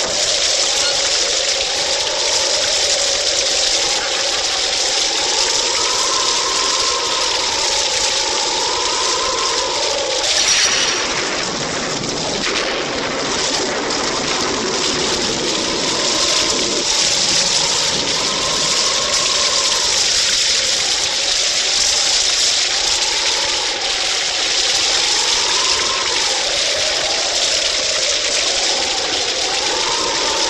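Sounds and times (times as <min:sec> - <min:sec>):
rain: 0:00.0 - 0:30.4
thunder: 0:10.2 - 0:21.1.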